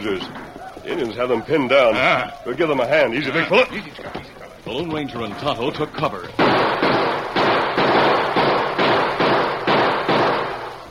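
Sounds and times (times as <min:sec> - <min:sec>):
speech: 0:00.0 - 0:06.4
gunfire shots: 0:06.4 - 0:10.8.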